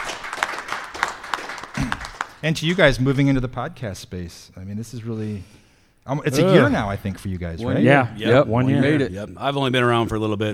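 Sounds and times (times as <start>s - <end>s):
audience applause: 0.0s - 2.8s
speech: 2.4s - 10.5s.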